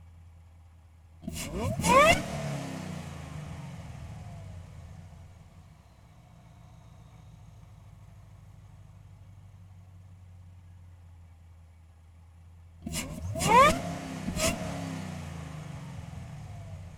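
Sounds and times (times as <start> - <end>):
2014 Camaro ZL1 engine idling in neutral: 1.2 - 2.2, 3.0 - 12.0, 12.8 - 16.9
2014 Camaro ZL1 engine intake noise: 1.2 - 2.4, 12.9 - 16.9
2014 Camaro ZL1 engine throttle blips in neutral: 1.2 - 4.7, 12.9 - 16.9
2014 Camaro ZL1 engine starting: 1.2 - 8.9, 12.8 - 16.9.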